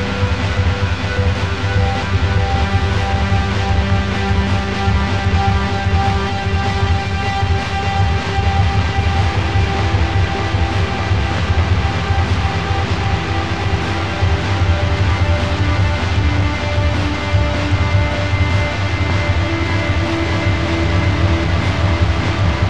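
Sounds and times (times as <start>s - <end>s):
drums: 0.0s - 22.6s
keyboard: 0.0s - 22.6s
noise: 0.0s - 22.6s.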